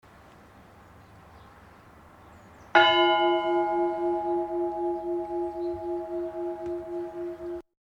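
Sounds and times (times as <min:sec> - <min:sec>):
bell ringing: 0:02.8 - 0:07.6.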